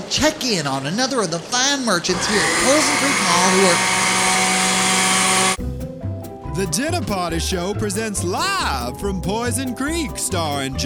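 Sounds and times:
speech: 0:00.1 - 0:04.1, 0:06.6 - 0:10.8
blender running: 0:02.1 - 0:05.6.

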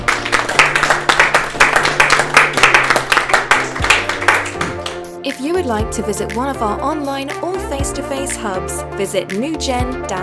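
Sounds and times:
audience applause: 0:00.0 - 0:05.1
speech: 0:05.6 - 0:10.2.

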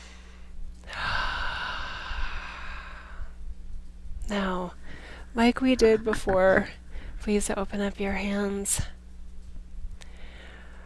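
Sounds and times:
deep breath during a guided relaxation exercise: 0:00.0 - 0:03.4, 0:04.8 - 0:05.3, 0:10.0 - 0:10.8
speech: 0:04.3 - 0:09.0.

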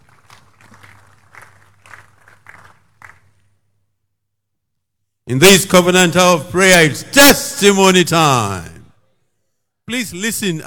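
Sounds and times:
crowd clapping in rhythm: 0:00.0 - 0:03.8
speech: 0:05.3 - 0:08.8, 0:09.9 - 0:10.6.

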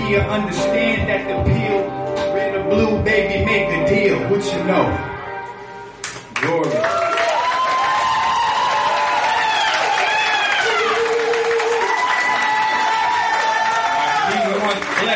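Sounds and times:
speech: 0:00.1 - 0:05.1, 0:06.4 - 0:06.9
crowd clapping: 0:06.0 - 0:15.1.

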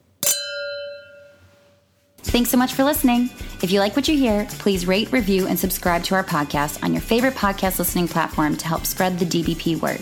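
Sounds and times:
glasses clinking in a toast: 0:00.2 - 0:01.7
speech: 0:02.3 - 0:10.0.

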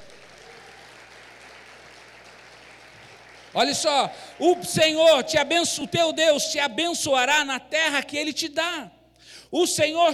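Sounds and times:
audience applause: 0:00.0 - 0:05.2
speech: 0:03.6 - 0:10.1.

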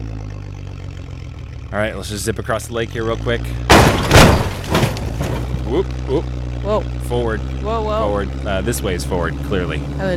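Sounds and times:
boat engine starting up: 0:00.2 - 0:10.1
speech: 0:01.7 - 0:04.5, 0:05.7 - 0:10.1
faint rattling clatter: 0:03.6 - 0:05.9.

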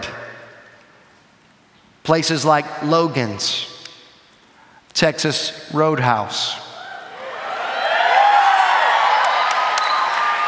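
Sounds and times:
speech: 0:02.0 - 0:03.7, 0:05.0 - 0:06.6
crowd cheering: 0:06.7 - 0:10.4
whistles: 0:09.7 - 0:10.3.

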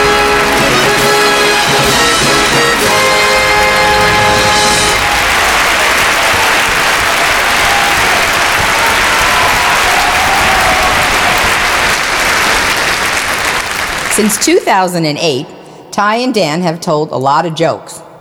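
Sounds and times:
crowd applause: 0:00.0 - 0:14.4
faint cheering: 0:04.0 - 0:12.9
speech: 0:14.3 - 0:18.0.

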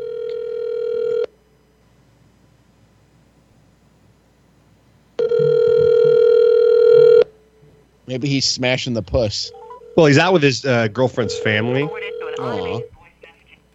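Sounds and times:
outgoing phone call ringback tone: 0:00.0 - 0:01.3, 0:05.2 - 0:07.3, 0:09.5 - 0:10.4, 0:11.0 - 0:12.9
speech: 0:08.1 - 0:12.9.

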